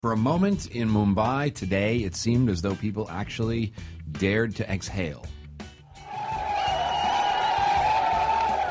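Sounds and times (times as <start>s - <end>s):
speech: 0.0s - 5.4s
crowd cheering outside Nariman House Jewish Cultural Center: 5.9s - 8.6s.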